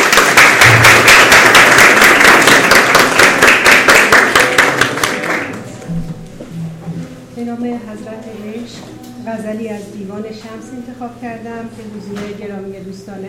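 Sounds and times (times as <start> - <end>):
audience clapping: 0.0 - 5.8
speech: 9.2 - 13.2.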